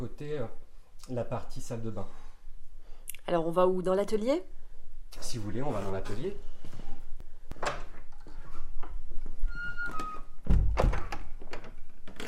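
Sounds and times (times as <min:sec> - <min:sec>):
speech: 0:00.0 - 0:02.3, 0:03.2 - 0:06.5
old workshop door creaking open: 0:07.6 - 0:12.2.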